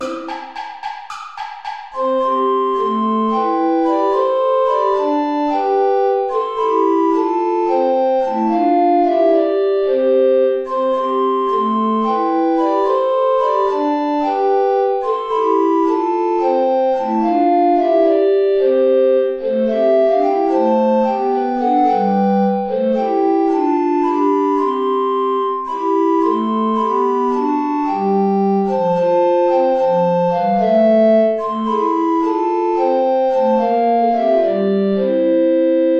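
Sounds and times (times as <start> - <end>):
play-along accompaniment without alto recorder: 0.0 - 35.9.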